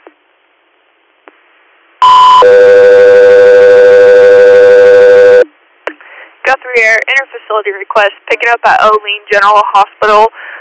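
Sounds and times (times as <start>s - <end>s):
two-tone dispatch radio alert: 2.0s - 5.4s
speech: 2.4s - 3.0s, 6.8s - 10.5s.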